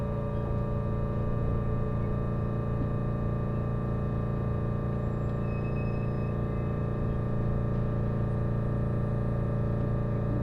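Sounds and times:
Resort Shirakami train engine hum: 0.0 - 10.4.

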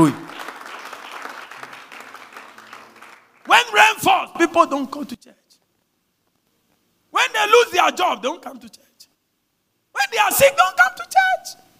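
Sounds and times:
speech: 0.0 - 0.2, 4.4 - 5.4, 7.5 - 8.9, 10.0 - 11.6
audience clapping: 0.0 - 3.8.

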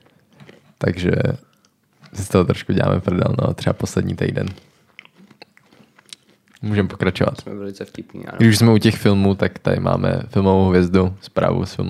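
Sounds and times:
speech: 0.8 - 1.5, 2.2 - 4.7, 6.6 - 11.8
person chewing food with crisp crunches: 4.4 - 6.7.

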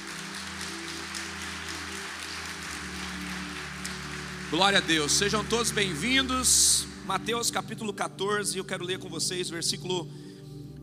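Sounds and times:
audience applause: 0.0 - 7.2
speech: 4.5 - 10.3.

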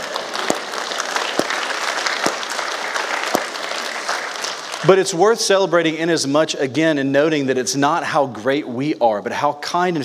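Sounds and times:
people clapping: 0.0 - 5.7
speech: 4.8 - 10.0.

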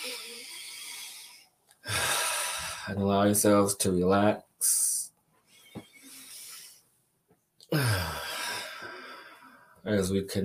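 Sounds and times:
slow deep breath during a guided relaxation: 0.0 - 3.0, 5.4 - 6.8, 7.7 - 9.8
speech: 2.8 - 5.0, 9.8 - 10.4.

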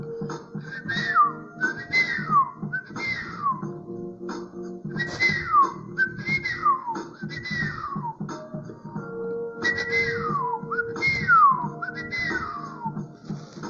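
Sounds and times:
person whistling an imitation of birdsong: 0.6 - 3.7, 4.9 - 8.2, 9.6 - 13.0.

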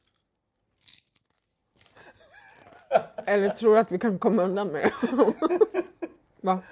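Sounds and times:
eating crunchy potato chips: 0.0 - 2.0
laughter: 2.4 - 3.7, 4.8 - 6.2
speech: 2.9 - 6.7.

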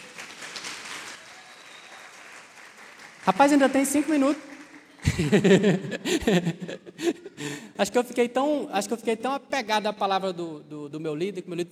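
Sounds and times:
audience applause: 0.0 - 6.4
speech: 3.2 - 4.5, 5.2 - 7.2, 7.8 - 11.6
laughter: 4.7 - 7.8.

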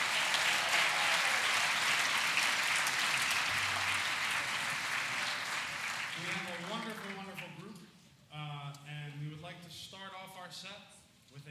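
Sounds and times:
audience applause at concert: 0.0 - 7.6
speech: 9.7 - 11.4.

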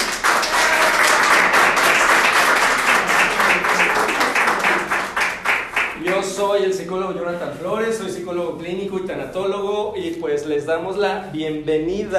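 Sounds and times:
audience applause: 0.0 - 6.2
speech: 6.4 - 12.1.

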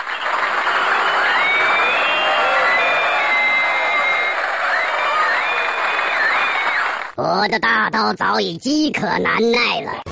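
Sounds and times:
warm applause and cheering: 0.0 - 7.2
speech: 7.5 - 10.0.

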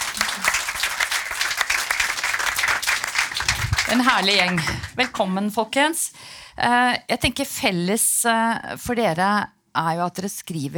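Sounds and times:
audience applause: 0.0 - 5.2
speech: 3.9 - 10.7.

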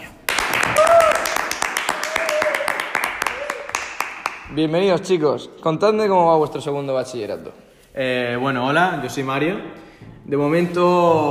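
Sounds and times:
small audience clapping: 0.0 - 4.5
faint cheering whoops: 0.6 - 3.9
speech: 4.5 - 11.2.

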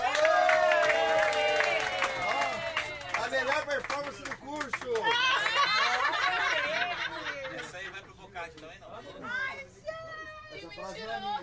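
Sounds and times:
class applauding: 0.0 - 6.7
laughter: 5.0 - 8.1.

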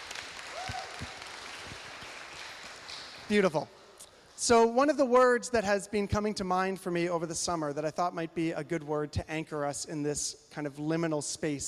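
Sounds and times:
audience clapping: 0.0 - 3.6
speech: 3.3 - 3.8, 4.4 - 11.6.

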